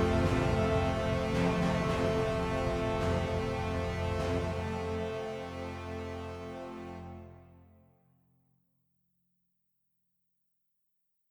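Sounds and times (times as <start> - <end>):
entrance fanfare: 0.0 - 7.2.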